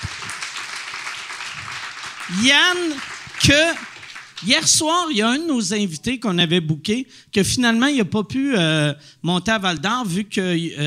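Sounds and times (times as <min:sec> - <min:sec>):
crowd applause: 0:00.0 - 0:04.8
speech: 0:02.3 - 0:10.8.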